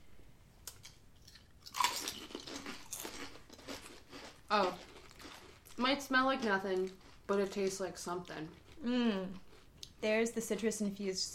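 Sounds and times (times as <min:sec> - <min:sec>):
biting and crunching a kettle chip: 0:00.6 - 0:08.8
speech: 0:04.5 - 0:04.9, 0:05.8 - 0:09.4, 0:10.0 - 0:11.3.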